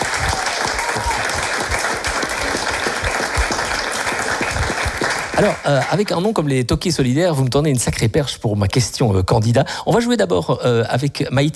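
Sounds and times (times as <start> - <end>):
applause: 0.0 - 6.5
speech: 5.4 - 11.5.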